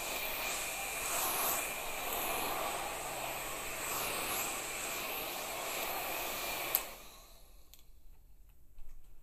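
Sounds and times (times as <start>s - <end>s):
barber cutting hair: 0.0s - 7.8s.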